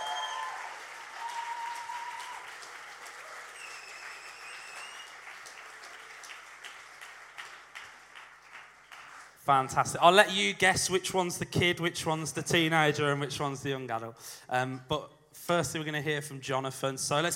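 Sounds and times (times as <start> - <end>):
whistles and cheers: 0.0 - 5.6
crowd applauding: 0.0 - 9.4
speech: 9.5 - 17.3.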